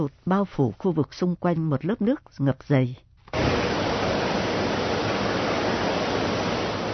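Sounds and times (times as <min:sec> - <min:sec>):
speech: 0:00.0 - 0:03.6
machines whirring at the Bang Su flood water pumping station: 0:03.3 - 0:06.9.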